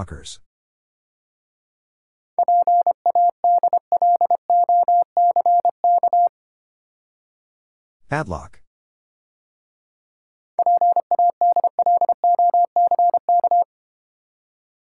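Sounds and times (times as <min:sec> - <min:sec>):
morse code at 25 words per minute: 0:02.4 - 0:06.3, 0:10.6 - 0:13.7.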